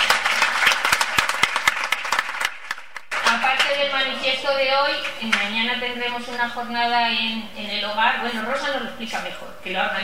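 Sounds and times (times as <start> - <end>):
audience applause for staff of a day centre and care home: 0.0 - 3.6
speech: 4.4 - 10.0.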